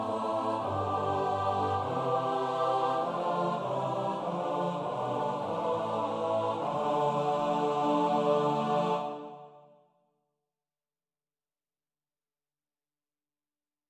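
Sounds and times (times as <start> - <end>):
SATB choir singing a psalm, split parts: 0.0 - 9.8.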